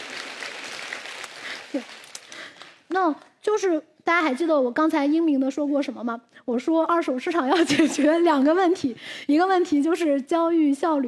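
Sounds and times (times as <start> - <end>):
audience applause: 0.0 - 2.8
speech: 1.7 - 2.0, 2.9 - 11.0.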